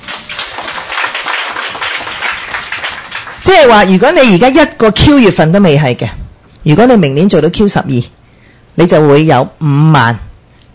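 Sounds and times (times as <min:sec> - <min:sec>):
audience applause: 0:00.0 - 0:03.4
speech: 0:03.5 - 0:08.2, 0:08.8 - 0:10.7.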